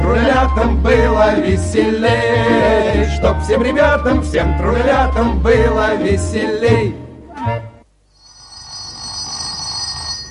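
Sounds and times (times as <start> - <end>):
speech: 0.4 - 7.6
telephone ringing: 8.1 - 10.2.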